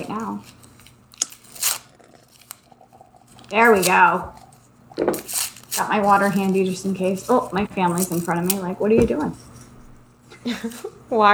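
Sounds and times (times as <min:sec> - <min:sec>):
paper torn by hand: 0:00.0 - 0:02.7, 0:05.1 - 0:10.1
brief crackly snaps of paper: 0:00.0 - 0:11.1
speech: 0:00.1 - 0:00.6, 0:03.5 - 0:04.4, 0:05.0 - 0:09.5, 0:10.4 - 0:11.3.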